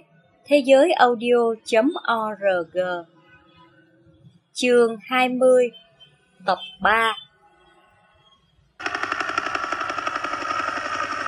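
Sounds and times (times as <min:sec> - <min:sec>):
speech: 0:00.5 - 0:03.1, 0:04.6 - 0:05.8, 0:06.4 - 0:07.2
helicopter mechanical whine: 0:08.8 - 0:11.2
helicopter rotor blades roaring: 0:08.8 - 0:11.2.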